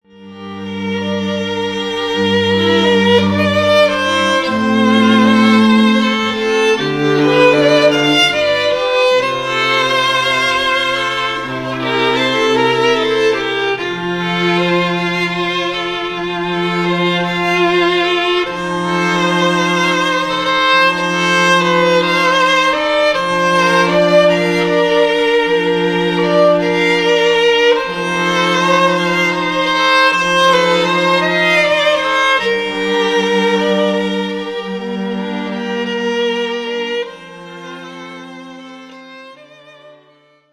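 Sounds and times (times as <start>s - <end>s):
classical string quartet: 0.0s - 40.5s.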